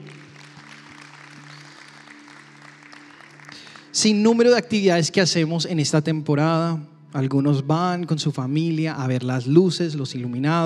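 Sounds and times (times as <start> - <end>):
audience applause: 0.0 - 4.2
speech: 3.9 - 10.6.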